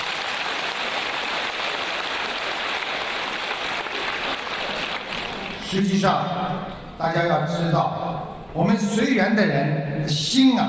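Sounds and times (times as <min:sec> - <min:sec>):
people clapping: 0:00.0 - 0:05.7
speech: 0:05.7 - 0:10.6.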